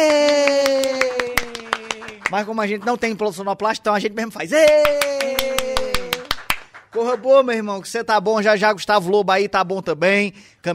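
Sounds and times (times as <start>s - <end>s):
hand clapping: 0.0s - 3.0s, 4.6s - 7.5s
speech: 2.3s - 5.5s, 7.0s - 10.7s.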